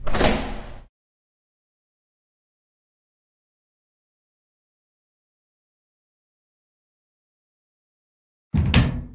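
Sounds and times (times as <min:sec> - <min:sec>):
door sequence: 0:00.0 - 0:00.9, 0:08.6 - 0:09.1.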